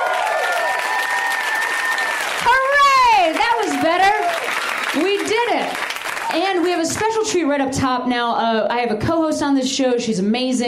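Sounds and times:
audience applause: 0.0 - 7.2
speech: 4.9 - 10.6.

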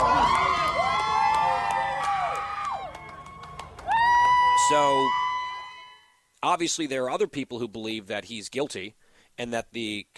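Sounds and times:
supporters cheering outside a courthouse: 0.0 - 6.2
speech: 4.7 - 5.2, 6.4 - 10.1.

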